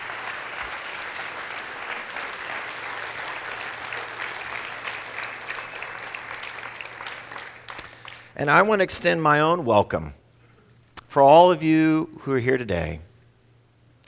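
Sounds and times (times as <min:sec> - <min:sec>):
audience applause: 0:00.0 - 0:09.1
speech: 0:08.4 - 0:10.2, 0:11.1 - 0:13.1.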